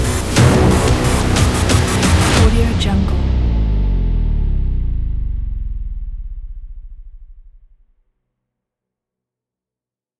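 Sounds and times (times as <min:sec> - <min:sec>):
dramatic trailer music: 0:00.0 - 0:07.3.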